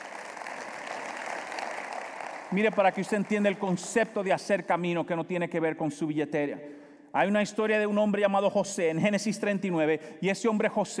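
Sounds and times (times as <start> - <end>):
audience applauding: 0.0 - 4.2
speech: 2.5 - 10.9.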